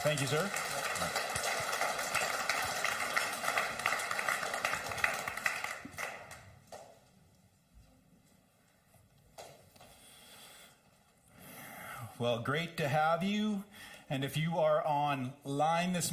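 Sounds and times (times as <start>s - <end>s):
speech: 0.0s - 1.4s, 12.2s - 16.1s
people cheering: 0.0s - 6.2s
applause: 0.0s - 7.0s.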